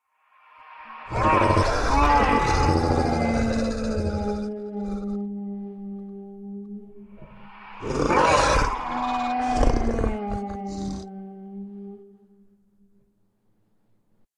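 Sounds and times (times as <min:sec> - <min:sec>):
hounds roaring: 0:01.1 - 0:05.2, 0:07.2 - 0:11.1.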